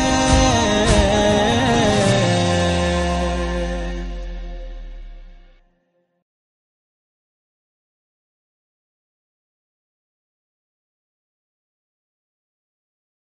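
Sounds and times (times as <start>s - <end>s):
Arabic nawha chant: 0.0s - 5.3s.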